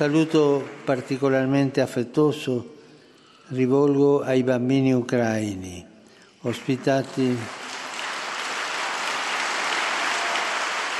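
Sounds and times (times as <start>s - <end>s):
speech: 0.0s - 2.8s, 3.5s - 7.6s
long applause from audience in hall: 6.5s - 10.9s.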